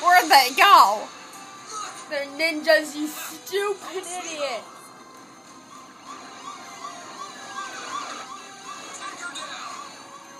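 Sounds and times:
speech: 0.3s - 1.2s, 2.1s - 4.8s
police car siren: 5.4s - 10.3s.

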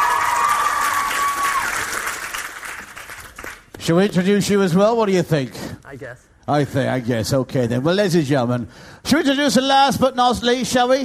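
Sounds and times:
audience cheering: 0.0s - 2.5s
audience applause: 0.0s - 3.8s
speech: 3.9s - 11.0s.

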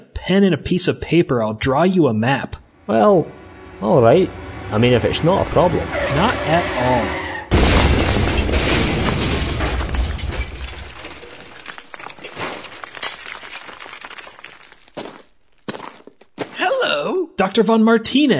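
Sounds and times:
speech: 0.3s - 7.2s, 17.6s - 18.3s
car crashing through a wall: 4.4s - 14.2s.

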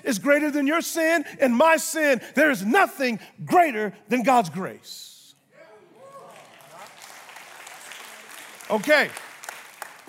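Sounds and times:
speech: 0.1s - 5.1s, 8.7s - 9.3s
crowd clapping: 6.2s - 10.0s.

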